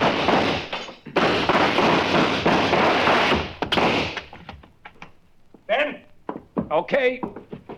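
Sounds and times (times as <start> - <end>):
gunshots in a shootout: 0.0 - 4.3
speech: 6.8 - 7.4.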